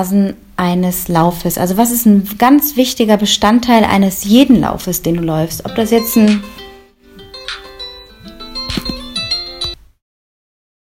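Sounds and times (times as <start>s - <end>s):
speech: 0.0s - 6.6s
mobile phone ringing with incoming call: 5.7s - 9.8s.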